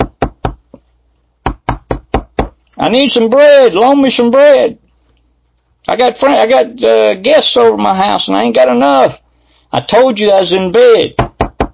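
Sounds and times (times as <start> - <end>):
knocking on a door acted out by a preacher: 0.0 - 0.7, 1.4 - 2.6, 11.2 - 11.7
speech: 2.8 - 4.8, 5.8 - 11.2.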